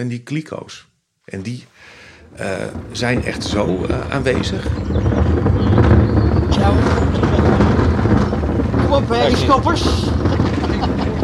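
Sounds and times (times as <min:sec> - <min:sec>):
speech: 0:00.0 - 0:05.2, 0:09.0 - 0:11.2
thunder rumbling: 0:02.0 - 0:11.2
laughter: 0:06.8 - 0:08.2, 0:09.0 - 0:11.2.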